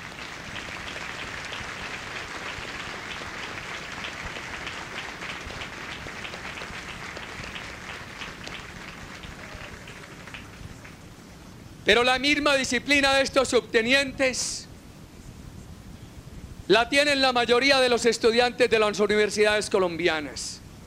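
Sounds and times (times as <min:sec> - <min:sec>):
applause for the families: 0:00.0 - 0:11.2
speech: 0:11.9 - 0:14.7, 0:16.7 - 0:20.6.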